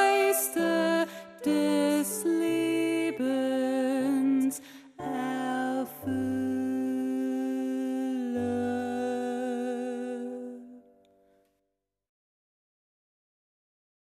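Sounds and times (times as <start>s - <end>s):
alto singing: 0.0s - 10.8s
choral music: 0.0s - 11.4s.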